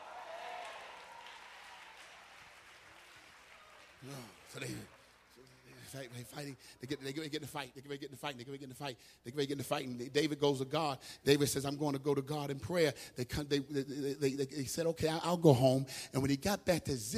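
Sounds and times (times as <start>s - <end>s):
audience clapping hands: 0.0s - 6.6s
speech: 4.0s - 17.1s.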